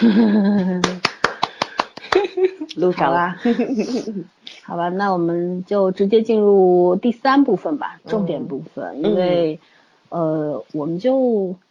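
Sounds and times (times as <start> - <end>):
speech: 0.0 - 0.8, 2.8 - 11.6
hand clapping: 0.6 - 2.8.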